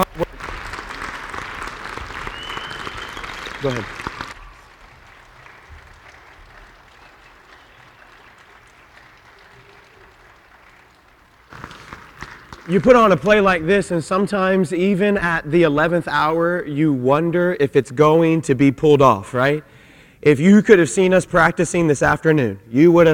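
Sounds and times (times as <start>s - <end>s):
audience applause: 0.0s - 13.4s
speech: 3.6s - 4.0s, 12.7s - 23.1s.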